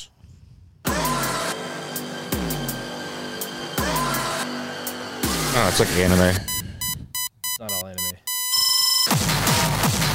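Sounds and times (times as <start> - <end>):
drum and bass music from a trailer: 0.9 - 6.4, 9.0 - 10.1
speech: 5.6 - 6.5.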